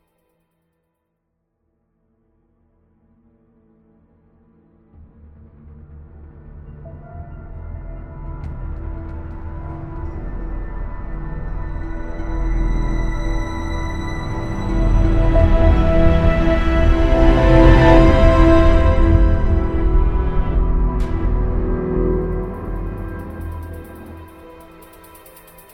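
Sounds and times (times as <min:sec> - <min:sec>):
tense room tone: 0:07.6 - 0:25.7.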